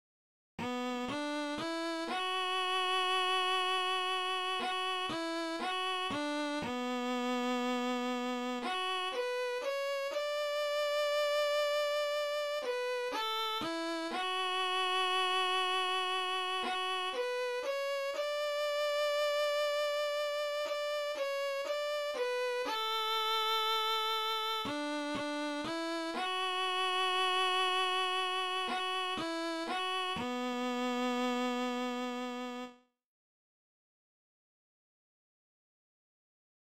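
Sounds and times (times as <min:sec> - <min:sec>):
melody: 0:00.6 - 0:31.8.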